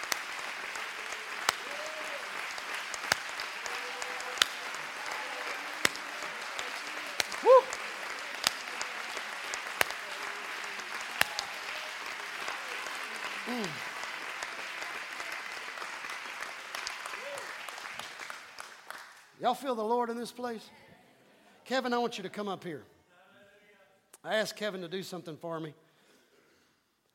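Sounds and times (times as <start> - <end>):
audience clapping hands in praise: 0.0 - 19.4
speech: 19.4 - 20.8, 21.7 - 22.9, 24.2 - 25.8.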